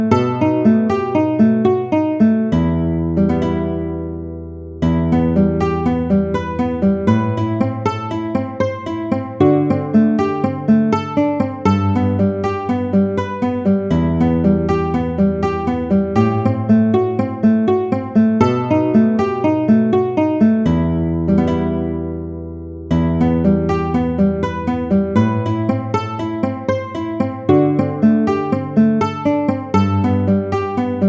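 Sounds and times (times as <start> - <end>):
guitar study in E minor: 0.0 - 31.0.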